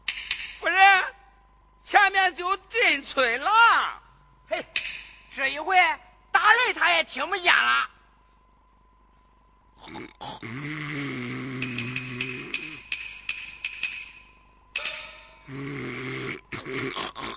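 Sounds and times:
speech: 0:02.3 - 0:04.7, 0:05.4 - 0:07.9
snoring while asleep: 0:09.8 - 0:12.8, 0:15.5 - 0:17.3.

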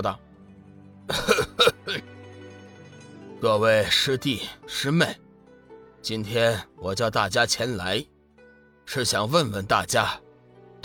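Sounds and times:
speech: 0:00.0 - 0:00.2, 0:01.1 - 0:02.1, 0:03.4 - 0:05.2, 0:06.0 - 0:08.1, 0:08.9 - 0:10.2
light coughs: 0:01.1 - 0:02.0.

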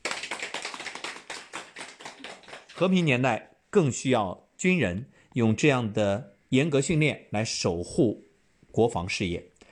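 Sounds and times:
audience applause: 0:00.0 - 0:03.0
speech: 0:02.8 - 0:09.5.

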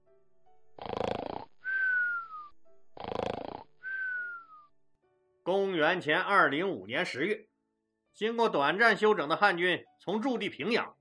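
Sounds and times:
person snoring: 0:00.8 - 0:02.1, 0:03.0 - 0:04.2
speech: 0:05.8 - 0:07.5, 0:08.2 - 0:10.9.

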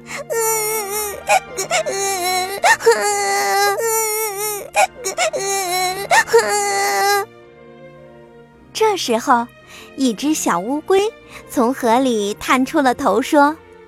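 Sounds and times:
little rabbit crying sound effect in a children's story: 0:00.0 - 0:07.2
speech: 0:01.3 - 0:03.9, 0:04.8 - 0:07.3, 0:08.8 - 0:13.6.

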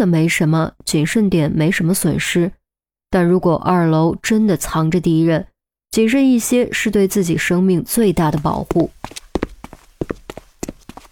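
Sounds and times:
speech: 0:00.0 - 0:09.2
hard hollow footsteps climbing stairs: 0:08.3 - 0:11.1.

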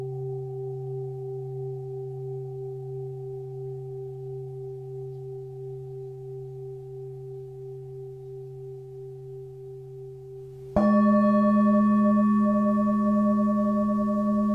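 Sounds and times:
singing bowl ringing at 176Hz: 0:00.0 - 0:14.5
singing bowl strike: 0:10.7 - 0:14.5.

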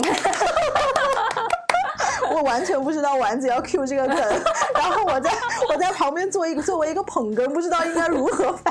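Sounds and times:
hands clapping: 0:00.0 - 0:01.9
laughter: 0:00.0 - 0:02.8, 0:04.0 - 0:06.1
speech: 0:02.4 - 0:08.7.

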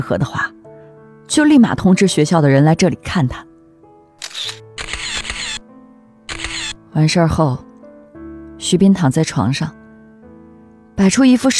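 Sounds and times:
speech: 0:00.0 - 0:00.6, 0:01.3 - 0:03.5, 0:06.9 - 0:07.7, 0:08.6 - 0:09.8, 0:11.0 - 0:11.5
phone camera shutter: 0:04.2 - 0:05.6, 0:06.3 - 0:06.8.

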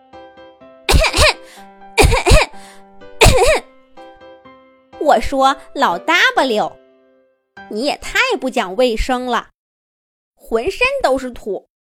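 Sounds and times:
coughing from dust: 0:00.9 - 0:02.6, 0:03.2 - 0:03.7
speech: 0:01.5 - 0:02.9, 0:05.0 - 0:06.8, 0:07.7 - 0:09.5, 0:10.5 - 0:11.7.

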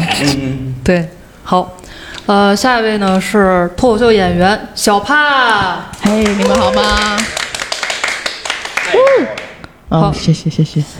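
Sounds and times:
speech: 0:00.2 - 0:07.4, 0:08.9 - 0:10.9
audience applause: 0:06.0 - 0:09.6.

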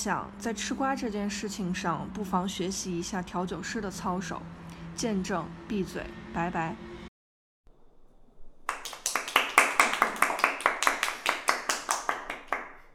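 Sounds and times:
speech: 0:00.0 - 0:06.9
people clapping: 0:08.6 - 0:12.9.

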